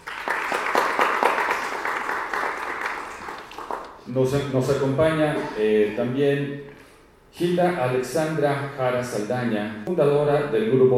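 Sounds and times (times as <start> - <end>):
audience applause: 0.0 - 4.0
speech: 4.1 - 10.9.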